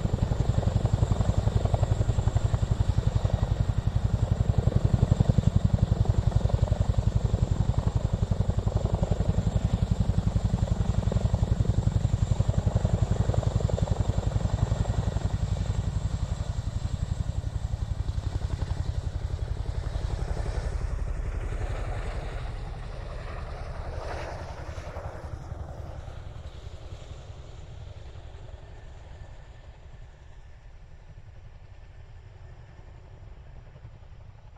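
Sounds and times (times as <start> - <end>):
Chinook helicopter hovering and passing: 0.0 - 34.5.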